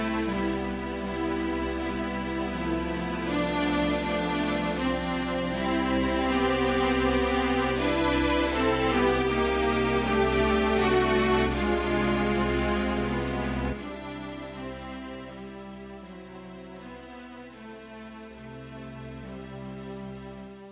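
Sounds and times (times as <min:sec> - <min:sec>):
orchestra playing sacred music: 0:00.0 - 0:16.1.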